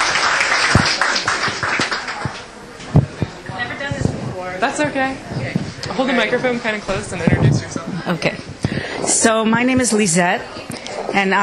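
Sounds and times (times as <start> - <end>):
group clapping for a woman invited to speak: 0.0 - 4.1
speech: 4.6 - 8.5, 9.2 - 11.4.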